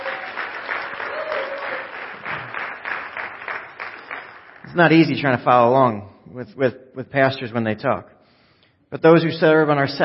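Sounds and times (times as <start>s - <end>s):
audience applause at a church service: 0.0s - 4.8s
speech: 4.7s - 8.2s, 8.9s - 10.0s.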